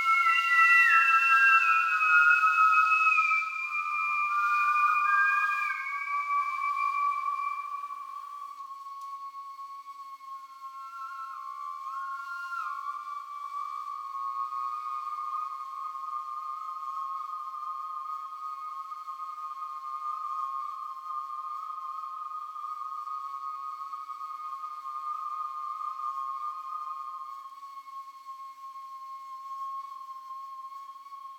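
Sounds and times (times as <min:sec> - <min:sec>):
whistle: 0:00.0 - 0:31.3.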